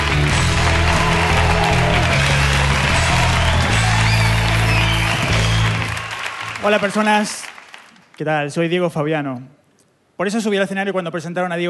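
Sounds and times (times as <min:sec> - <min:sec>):
audience ovation for a comedian: 0:00.0 - 0:08.3
speech: 0:06.6 - 0:07.4, 0:08.2 - 0:09.6, 0:10.2 - 0:11.6.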